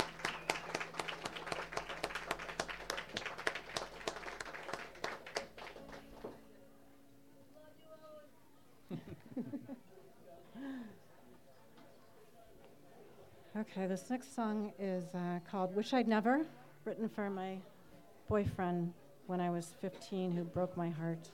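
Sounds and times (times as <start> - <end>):
audience applause: 0.0 - 6.4
laughter: 8.9 - 10.9
speech: 13.6 - 17.7, 18.3 - 21.3.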